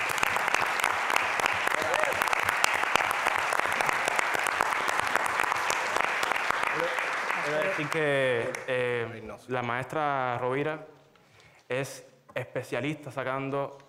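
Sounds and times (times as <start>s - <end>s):
audience applause: 0.0s - 8.8s
speech: 7.8s - 11.0s, 11.7s - 13.8s.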